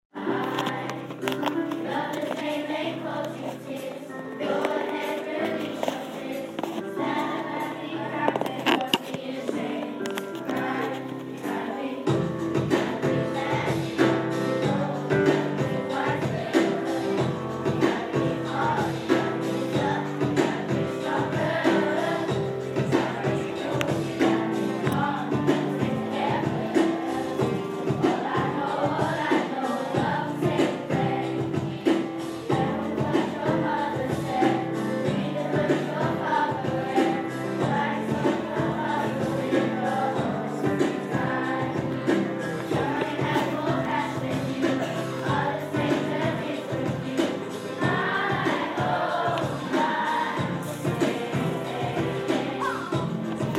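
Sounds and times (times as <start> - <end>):
KS2 choir singing: 0.2 - 53.5.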